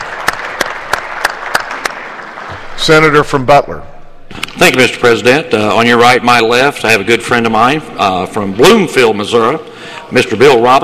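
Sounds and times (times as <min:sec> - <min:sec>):
applause in the Missouri Senate welcoming special guests: 0:00.0 - 0:03.2
speech: 0:02.8 - 0:10.8.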